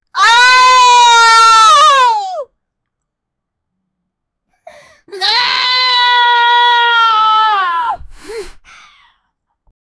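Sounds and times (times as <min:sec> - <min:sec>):
girl screaming: 0:00.2 - 0:02.5, 0:05.1 - 0:08.0.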